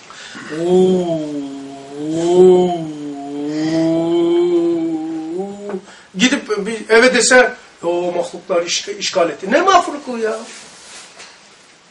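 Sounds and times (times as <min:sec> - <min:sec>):
speech: 0:00.4 - 0:01.4, 0:06.2 - 0:10.6
voice imitating wind in a forest: 0:00.4 - 0:05.9.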